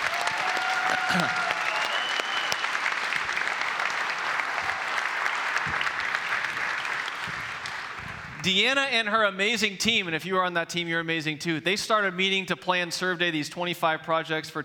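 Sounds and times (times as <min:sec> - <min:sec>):
audience applause: 0:00.0 - 0:08.4
speech: 0:01.1 - 0:01.5, 0:08.4 - 0:14.6
whistle-like tone: 0:01.6 - 0:02.8.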